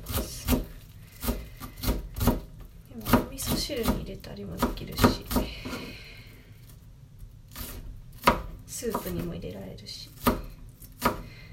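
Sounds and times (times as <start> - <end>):
knife finely chopping an onion on a board: 0.0 - 4.0, 4.6 - 5.8, 7.6 - 9.2, 10.2 - 11.5
speech: 3.4 - 6.1, 8.8 - 10.2.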